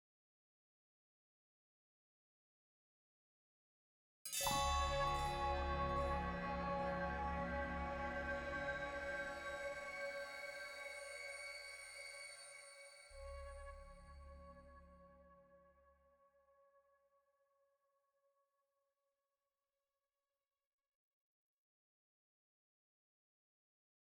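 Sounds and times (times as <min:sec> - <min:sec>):
spirit trial music stinger: 0:04.4 - 0:12.4.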